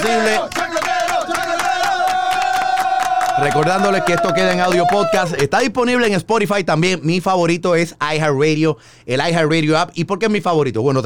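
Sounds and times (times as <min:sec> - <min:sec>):
speech: 0:00.0 - 0:00.6, 0:03.4 - 0:11.0
audience applause: 0:00.0 - 0:05.5.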